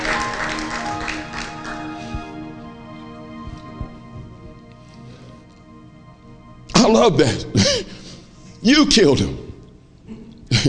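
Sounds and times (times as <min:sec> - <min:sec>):
audience clapping in praise: 0:00.0 - 0:02.5
sustained musical tones: 0:00.0 - 0:09.0
speech: 0:06.9 - 0:07.8, 0:08.6 - 0:09.4.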